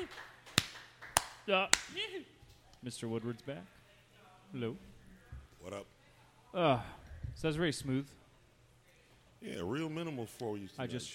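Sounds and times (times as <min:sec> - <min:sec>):
thin smattering of hand claps in a radio studio: 0:00.0 - 0:02.1
speech: 0:01.5 - 0:03.8, 0:04.5 - 0:04.9, 0:05.6 - 0:08.2, 0:09.4 - 0:11.1.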